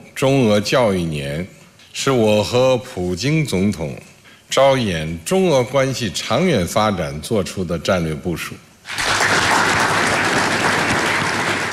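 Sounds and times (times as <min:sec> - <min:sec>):
speech: 0:00.2 - 0:09.0
warm applause from a large crowd: 0:08.9 - 0:11.7.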